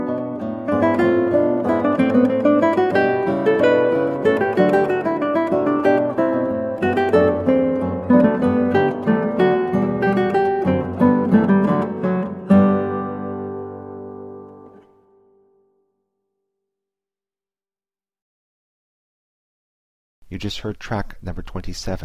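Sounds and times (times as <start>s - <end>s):
guitar playing an allegro: 0.0s - 15.8s
person speaking: 20.2s - 22.0s.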